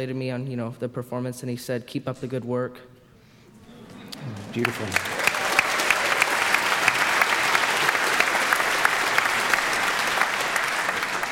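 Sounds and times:
speech: 0.0 - 3.0, 4.2 - 5.2
audience applause in an ovation after a musical performance: 3.6 - 11.3.

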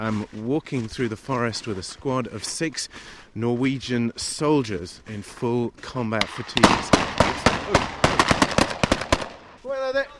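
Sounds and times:
speech: 0.0 - 7.0, 7.7 - 8.0
mock enemy gunfire on a forest exercise in the snow: 6.2 - 9.6.

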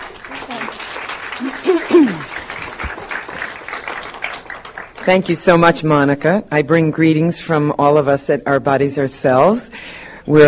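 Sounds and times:
audience applause welcoming a speaker: 0.0 - 5.1
speech: 5.0 - 10.4.

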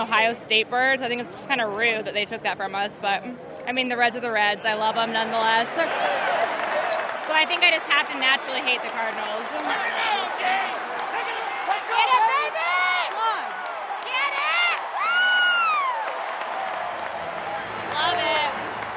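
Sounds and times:
speech: 0.0 - 6.5, 7.3 - 10.7
baseball stadium crowd cheering: 4.4 - 18.9.

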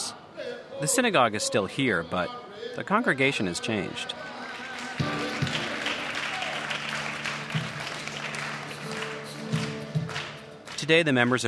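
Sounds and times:
speech: 0.4 - 4.4, 10.9 - 11.4
people clapping in a synagogue: 3.6 - 11.4.

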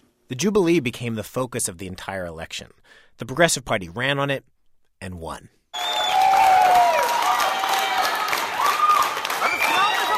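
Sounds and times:
speech: 0.3 - 5.6
shrill whistles: 5.7 - 10.1
crowd clapping in unison at election party: 5.8 - 10.1.

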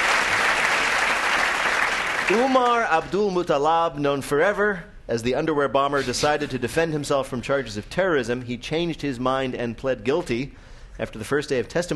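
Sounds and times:
audience applause on a news quiz show: 0.0 - 2.9
speech: 2.3 - 11.9.

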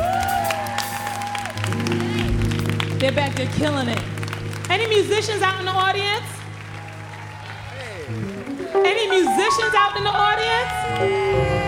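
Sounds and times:
audience applause for the instrumentalists at a live show: 0.0 - 11.6
crowd noise at a live show: 0.0 - 11.6
speech: 3.0 - 6.4, 8.1 - 11.6
sustained musical tone: 8.2 - 11.6.

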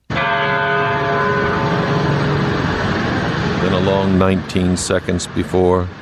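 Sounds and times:
church bell ringing in Newtown, Connecticut in remembrance: 0.0 - 4.7
speech: 3.7 - 6.0.

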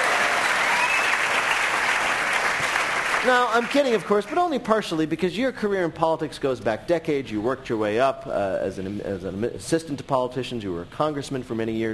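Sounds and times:
audience applause welcoming Senator Dick Durbin: 0.0 - 4.3
speech: 3.2 - 11.9.

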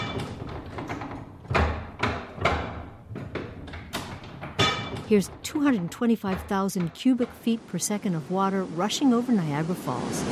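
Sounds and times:
old printing press running: 0.0 - 8.0
speech: 5.1 - 10.3.

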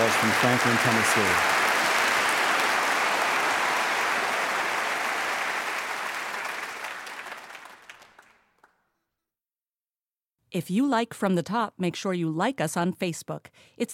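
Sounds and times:
round of applause: 0.0 - 8.9
speech: 0.2 - 1.6, 10.5 - 13.9.

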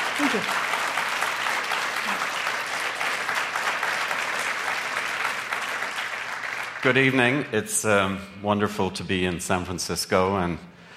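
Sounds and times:
audience applause welcoming two speakers at an evening conversation event: 0.0 - 7.5
speech: 0.2 - 0.7, 6.8 - 10.7.

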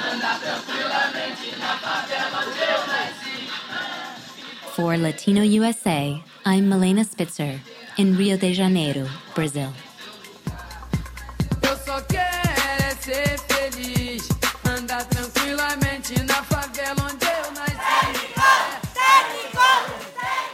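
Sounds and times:
crowd at a lucha libre wrestling match in Mexico chanting: 0.0 - 5.6, 17.1 - 20.5
sharp, evenly spaced beats: 0.0 - 20.5
speech: 4.8 - 9.8.

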